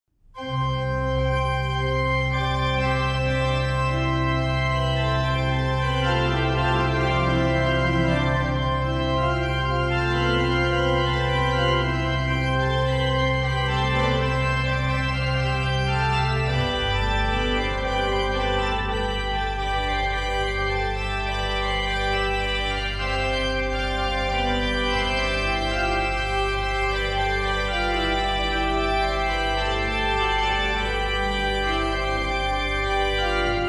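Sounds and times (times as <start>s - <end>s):
organ: 0.4s - 33.6s.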